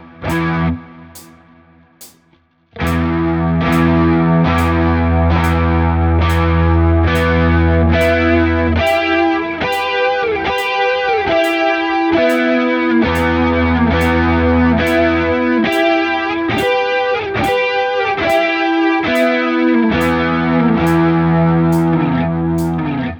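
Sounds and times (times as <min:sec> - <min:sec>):
cool straight rhythm with delay at 70 BPM: 0:00.3 - 0:02.2, 0:02.8 - 0:22.9.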